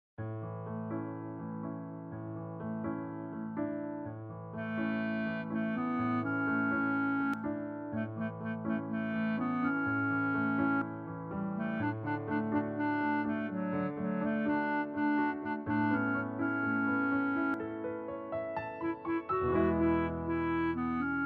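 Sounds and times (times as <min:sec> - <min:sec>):
piano song: 0:00.2 - 0:21.2.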